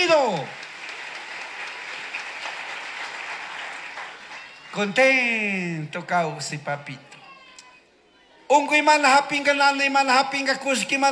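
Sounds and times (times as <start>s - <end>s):
crowd clapping: 0.0s - 5.3s
speech: 4.8s - 7.1s, 8.5s - 11.0s.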